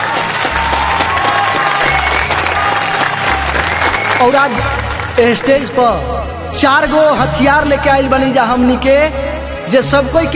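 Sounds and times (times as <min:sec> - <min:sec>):
audience applause: 0:00.0 - 0:05.7
speech: 0:04.2 - 0:10.3.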